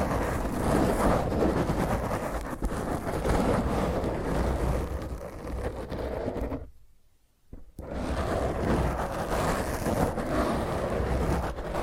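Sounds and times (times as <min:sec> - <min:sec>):
hand and fingernails scratching against a microphone: 0:00.0 - 0:06.7, 0:07.8 - 0:11.8.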